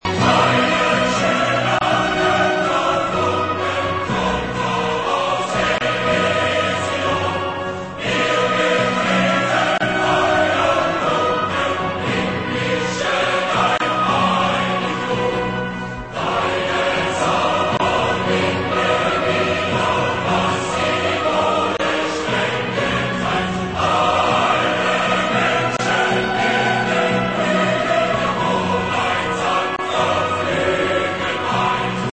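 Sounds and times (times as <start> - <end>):
anthem: 0.0 - 32.1.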